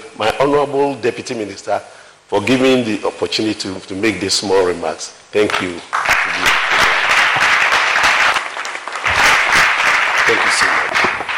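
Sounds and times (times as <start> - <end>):
speech: 0.2 - 6.5
audience applause: 5.9 - 11.3.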